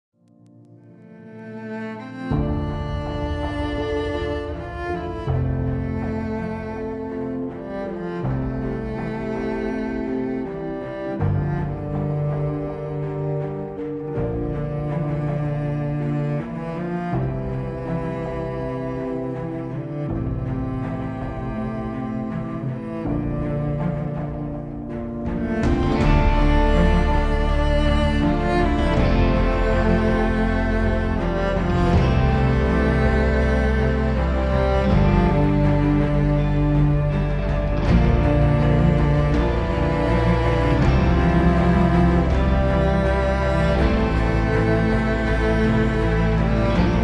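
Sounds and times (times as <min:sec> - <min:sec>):
background music: 0:00.0 - 0:47.0.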